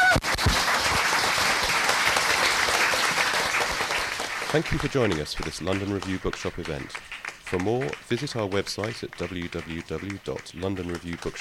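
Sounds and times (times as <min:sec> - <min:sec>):
audience applause: 0:00.0 - 0:11.3
speech: 0:04.5 - 0:11.3.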